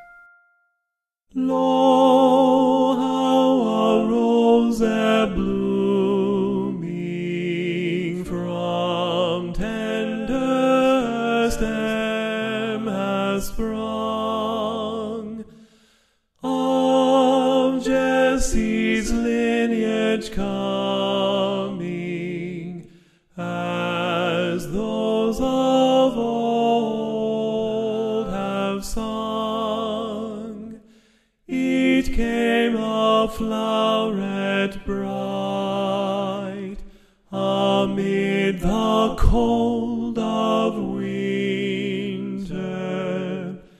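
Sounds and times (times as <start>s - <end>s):
tenor singing: 1.4s - 15.5s, 16.4s - 30.8s, 31.5s - 43.6s.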